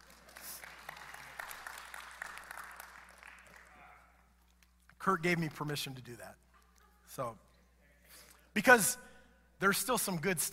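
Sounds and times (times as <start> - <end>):
audience clapping: 0.0 - 4.6
speech: 5.0 - 6.4, 7.2 - 7.5, 8.6 - 10.5.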